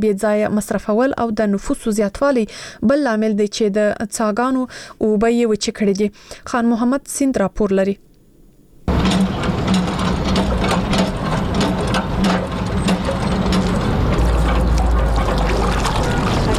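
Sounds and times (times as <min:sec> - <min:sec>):
speech: 0:00.0 - 0:08.1
water pump running in the Khwaja Baghra area of Kabul: 0:08.9 - 0:16.5.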